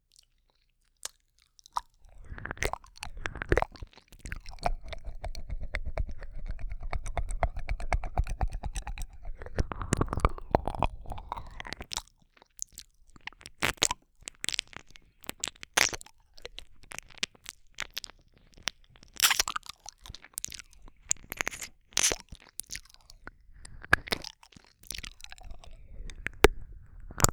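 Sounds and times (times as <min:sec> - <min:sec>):
ear licking ASMR: 0:01.8 - 0:12.0, 0:15.4 - 0:27.3
kissing: 0:21.4 - 0:22.2.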